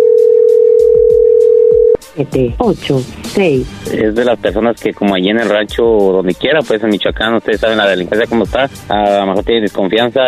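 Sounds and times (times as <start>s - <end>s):
telephone ringback tone on outgoing call: 0.0s - 2.0s
speech: 2.3s - 10.2s.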